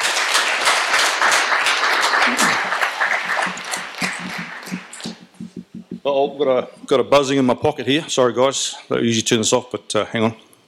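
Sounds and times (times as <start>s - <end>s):
audience applause: 0.0s - 5.4s
speech: 6.1s - 10.5s.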